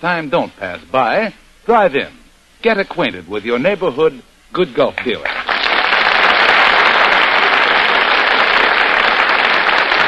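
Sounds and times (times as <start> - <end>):
speech: 0.0 - 5.4
studio audience applause for actors' entrance: 5.1 - 10.0.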